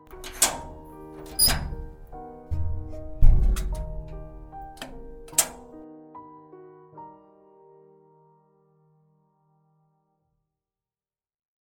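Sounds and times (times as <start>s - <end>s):
door to the rooftop opening: 0.0s - 5.8s.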